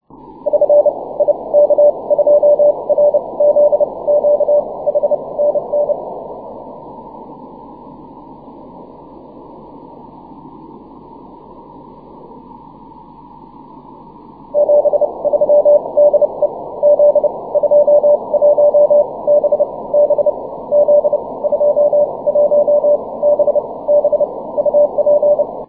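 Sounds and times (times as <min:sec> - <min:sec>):
CW Morse code beeps: 0:00.5 - 0:06.0, 0:14.6 - 0:25.6.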